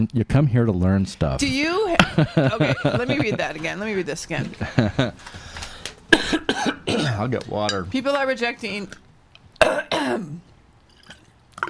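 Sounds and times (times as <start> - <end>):
speech: 0.0 - 5.6, 6.3 - 9.0, 9.6 - 10.5
laughter: 2.0 - 3.8, 4.4 - 5.3
person clearing throat: 6.1 - 7.3, 9.6 - 10.5
person coughing: 6.1 - 7.3, 9.6 - 10.5.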